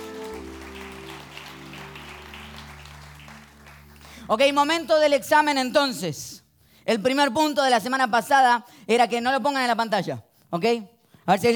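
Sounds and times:
sustained low musical hum: 0.0s - 4.3s
crowd applauding: 0.0s - 5.0s
speech: 4.3s - 11.5s.

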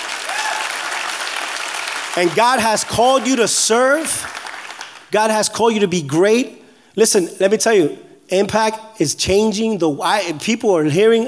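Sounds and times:
crowd applause: 0.0s - 5.1s
speech: 2.2s - 4.5s, 5.1s - 11.2s.

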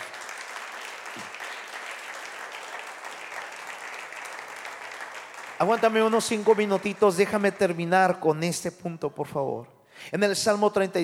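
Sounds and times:
audience applause: 0.0s - 7.8s
speech: 5.6s - 11.0s.

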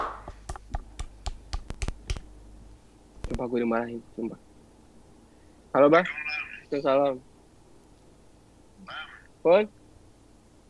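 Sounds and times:
hand clapping: 0.0s - 2.3s
speech: 3.3s - 4.5s, 5.8s - 7.3s, 9.4s - 9.8s.

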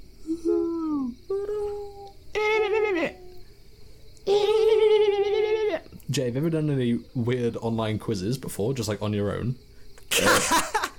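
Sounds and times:
faint steady insect-like buzz: 0.0s - 10.9s
voice imitating owls hooting: 0.2s - 3.5s, 4.2s - 6.0s
speech: 6.2s - 10.5s.

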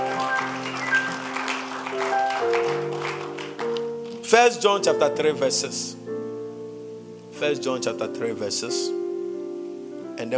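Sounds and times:
audience clapping: 0.0s - 4.3s
speech: 4.3s - 6.0s, 7.4s - 9.0s, 10.2s - 10.3s.

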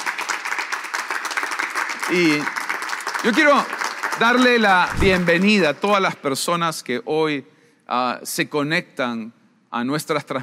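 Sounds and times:
crowd applauding: 0.0s - 6.2s
speech: 2.1s - 2.6s, 3.2s - 10.4s.

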